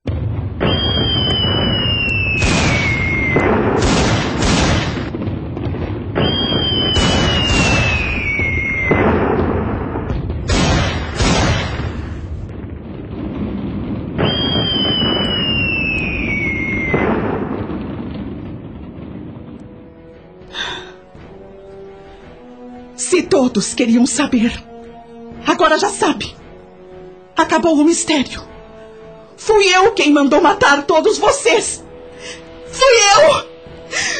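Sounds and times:
dramatised gunshot sound effect: 0:00.2 - 0:19.6
descending whistling tones in a gunshot sound effect: 0:00.7 - 0:03.5, 0:06.2 - 0:09.0, 0:14.2 - 0:17.0
speech: 0:23.4 - 0:24.7, 0:25.6 - 0:26.4, 0:27.4 - 0:28.5, 0:29.4 - 0:31.8, 0:32.7 - 0:34.1.

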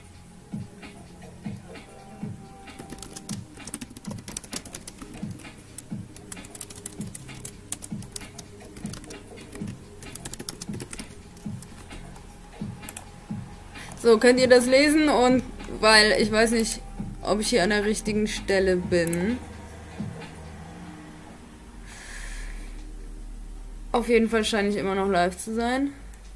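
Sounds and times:
typing a chat message on a computer keyboard: 0:02.7 - 0:12.2
speech: 0:14.0 - 0:19.5, 0:24.0 - 0:26.0.

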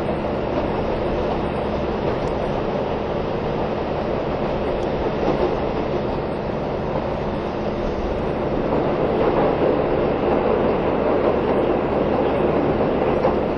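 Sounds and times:
KiHa 183 series Asoboy diesel train engine drone: 0:00.0 - 0:09.2
continuous rail clatter between Kumamoto and Miyaji: 0:00.0 - 0:13.5.

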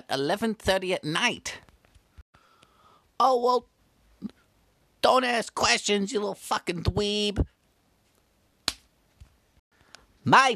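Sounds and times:
speech: 0:00.1 - 0:01.6, 0:03.2 - 0:04.4, 0:05.0 - 0:07.6, 0:10.2 - 0:10.5
slap in the face: 0:08.7 - 0:08.9.

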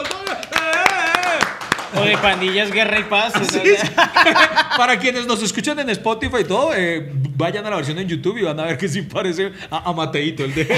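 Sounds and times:
crowd applause clapping: 0:00.0 - 0:03.7
speech: 0:01.9 - 0:10.7
laughter: 0:02.8 - 0:05.2, 0:10.4 - 0:10.7.

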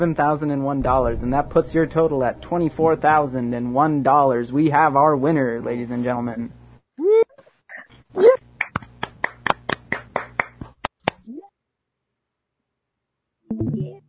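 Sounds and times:
speech: 0:00.0 - 0:07.2
hand claps after a quiz-game win: 0:08.6 - 0:11.2.

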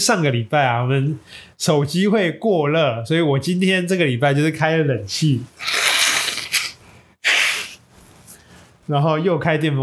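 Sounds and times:
speech: 0:00.0 - 0:05.8, 0:08.9 - 0:09.8
allergic sneeze or nose blowing: 0:05.6 - 0:07.8.

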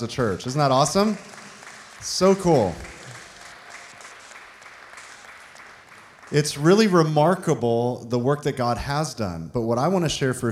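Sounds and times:
speech: 0:00.0 - 0:01.4, 0:02.0 - 0:02.9, 0:06.3 - 0:10.5
audience clapping: 0:00.0 - 0:07.4.

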